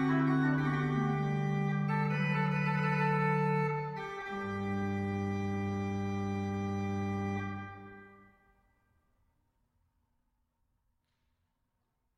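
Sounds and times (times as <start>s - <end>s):
pipe organ cornet stop recital piece: 0.0s - 8.1s.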